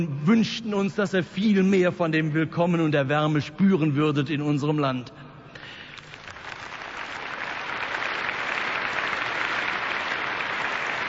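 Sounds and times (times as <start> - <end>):
speech: 0.0 - 5.2
audience applause: 6.0 - 11.0.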